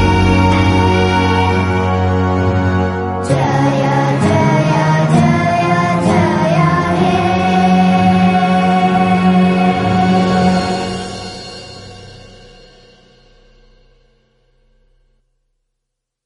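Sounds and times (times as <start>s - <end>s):
chorus singing a national anthem: 0.0s - 12.2s.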